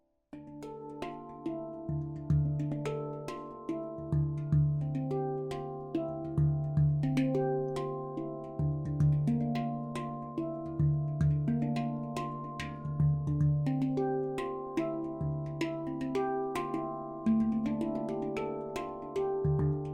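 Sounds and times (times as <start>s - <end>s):
D Kurd 10 handpan tuned to 440 Hz: 0.4s - 19.9s.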